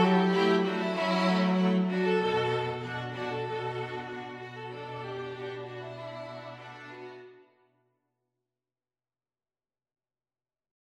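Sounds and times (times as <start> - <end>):
string quintet playing: 0.0 - 7.4.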